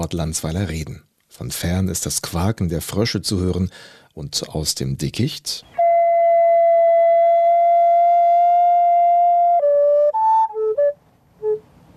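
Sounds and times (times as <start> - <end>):
speech: 0.0 - 5.8
recorder playing ethereal tones: 5.7 - 11.6.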